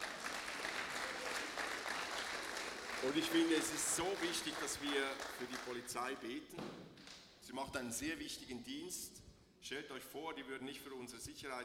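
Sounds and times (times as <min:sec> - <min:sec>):
audience applauding: 0:00.0 - 0:06.0
speech: 0:03.0 - 0:06.8, 0:07.5 - 0:11.6.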